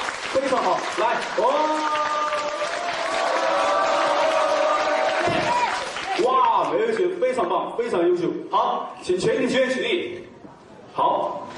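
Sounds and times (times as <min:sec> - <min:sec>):
audience applause: 0:00.0 - 0:06.4
speech: 0:00.4 - 0:02.2, 0:07.4 - 0:10.3, 0:11.0 - 0:11.5.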